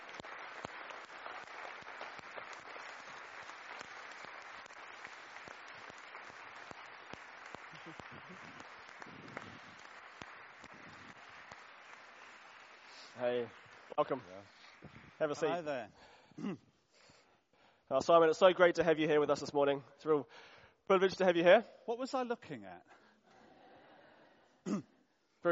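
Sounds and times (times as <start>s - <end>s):
crowd applause: 0.0s - 15.7s
speech: 13.2s - 14.6s, 15.2s - 16.6s, 17.9s - 22.9s.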